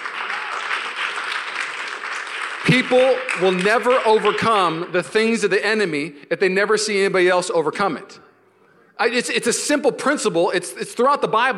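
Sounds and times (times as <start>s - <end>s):
audience clapping: 0.0s - 4.9s
speech: 2.6s - 8.3s, 9.0s - 11.5s.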